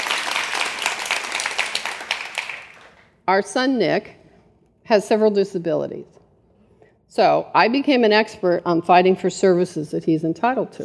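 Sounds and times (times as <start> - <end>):
crowd applause: 0.0 - 3.0
speech: 3.3 - 4.2, 4.9 - 6.2, 7.1 - 10.8.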